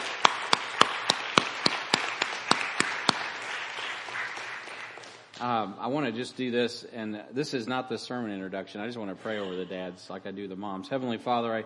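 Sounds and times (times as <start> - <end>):
audience applauding: 0.0 - 5.4
speech: 5.4 - 11.6.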